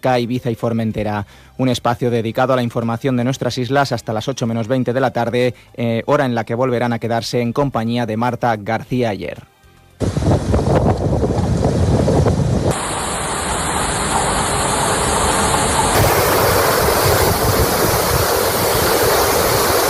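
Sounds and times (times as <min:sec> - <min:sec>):
speech: 0:00.0 - 0:10.5
heavy rain in the Balearic Islands storm: 0:10.0 - 0:19.8
storm's strong wind gusts in the Balearic Islands: 0:10.0 - 0:19.8.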